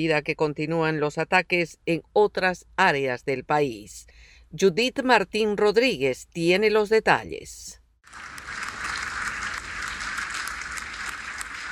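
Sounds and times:
speech: 0:00.0 - 0:08.3
standing applause in European Union parliament: 0:08.0 - 0:11.7.

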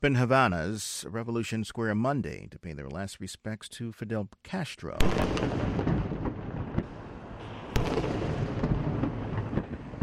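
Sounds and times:
speech: 0:00.0 - 0:06.2
21-gun salute in Havana at a memorial for Fidel Castro: 0:05.0 - 0:10.0.

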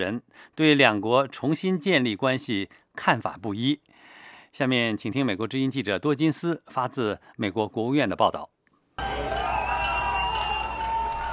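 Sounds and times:
speech: 0:00.0 - 0:08.5
crowd cheering at the opening of the Cuban embassy in Washington: 0:09.0 - 0:11.3.

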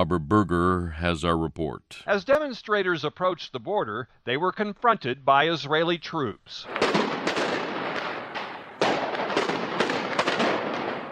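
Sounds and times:
speech: 0:00.0 - 0:07.2
gunfire and tear gas launchers at protest: 0:06.7 - 0:11.1.

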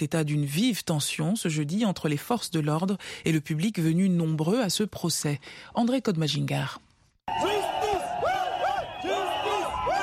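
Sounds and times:
speech: 0:00.0 - 0:07.4
protesters shouting and chanting in N'Djamena: 0:07.3 - 0:10.0.

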